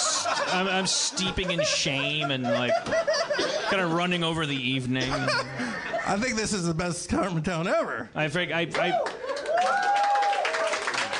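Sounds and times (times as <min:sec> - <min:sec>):
laughter: 0:00.0 - 0:06.6
speech: 0:00.5 - 0:10.0
audience clapping: 0:08.7 - 0:11.1.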